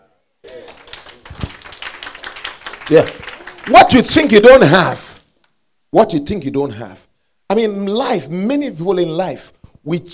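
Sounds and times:
audience clapping: 0.4s - 5.2s
speech: 2.9s - 5.1s, 5.9s - 10.1s.

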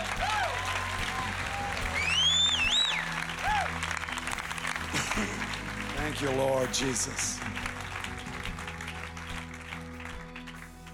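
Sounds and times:
audience clapping: 0.0s - 10.9s
speech: 6.1s - 7.5s.

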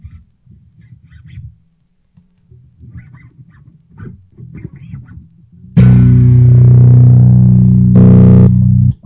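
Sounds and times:
ringing bass note cut by kill switch: 5.8s - 8.9s.

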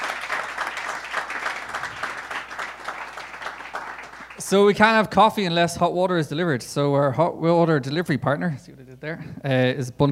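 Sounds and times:
audience applause: 0.0s - 5.0s
speech: 4.5s - 10.1s.

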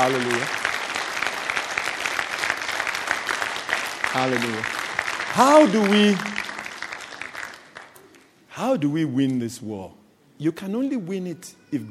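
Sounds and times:
speech: 0.0s - 0.6s, 4.2s - 6.4s, 8.6s - 11.8s
audience applause: 0.0s - 7.9s.

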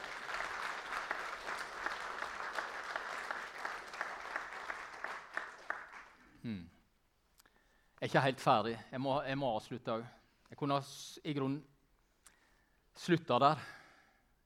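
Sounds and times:
audience applause: 0.0s - 6.2s
speech: 6.4s - 6.8s, 8.0s - 11.7s, 13.0s - 13.8s.

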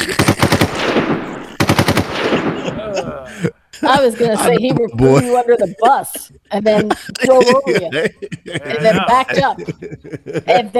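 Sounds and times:
laughter: 0.0s - 0.6s, 2.2s - 10.7s
gunfire sound effect: 0.0s - 3.0s
speech: 3.9s - 10.7s.

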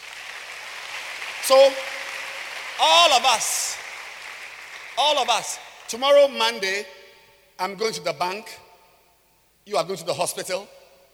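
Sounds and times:
audience clapping: 0.0s - 6.3s
speech: 1.5s - 2.0s, 2.8s - 3.8s, 5.0s - 7.0s, 7.6s - 8.6s, 9.6s - 10.8s.

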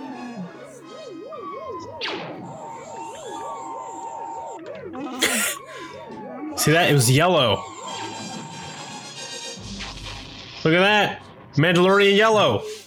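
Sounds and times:
warbling alarm: 0.0s - 9.3s
speech: 6.6s - 7.7s, 10.6s - 12.7s.

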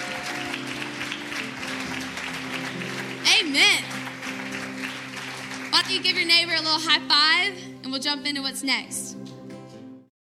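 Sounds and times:
audience clapping hands: 0.0s - 7.0s
speech: 3.4s - 3.9s, 5.9s - 9.2s.

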